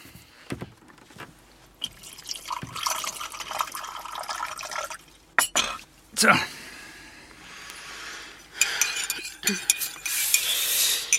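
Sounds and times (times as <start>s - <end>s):
tea pouring into a cup: 1.8s - 5.2s
speech: 6.2s - 6.5s, 9.5s - 9.8s
soft clinks: 8.6s - 11.1s.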